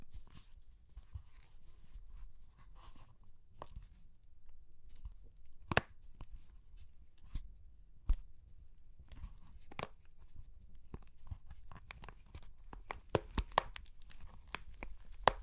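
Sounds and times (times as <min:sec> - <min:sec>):
crunchy clay cracking: 0:04.8 - 0:06.6, 0:07.2 - 0:15.4.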